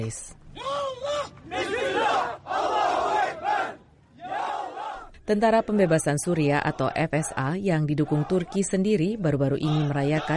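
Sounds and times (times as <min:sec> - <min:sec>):
speech: 0:00.0 - 0:02.8, 0:05.3 - 0:10.3
crowd of protesters shouting a chant: 0:01.0 - 0:08.7, 0:09.7 - 0:10.3.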